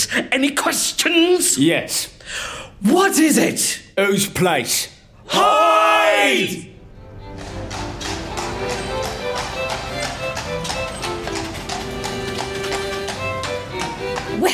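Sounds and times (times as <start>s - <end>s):
speech: 0.0s - 6.7s
footsteps on cobbled steps in Shaftesbury: 7.2s - 14.5s.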